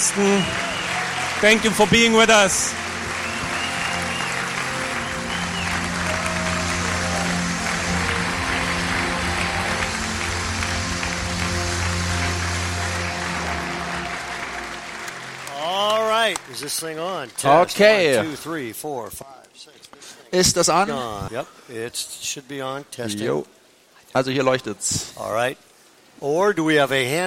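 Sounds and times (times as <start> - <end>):
audience applause: 0.0 - 18.3
speech: 0.1 - 0.6, 1.4 - 2.8, 16.6 - 19.7, 20.3 - 27.2.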